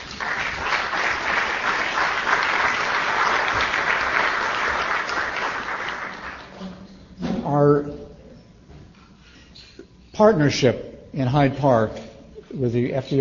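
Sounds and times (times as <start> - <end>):
audience applause: 0.0 - 6.7
speech: 10.2 - 13.1.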